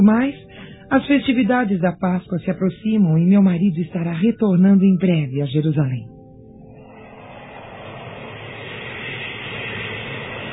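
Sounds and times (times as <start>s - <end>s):
speech: 0.0s - 6.1s
steady rushing wind blowing: 6.6s - 10.5s.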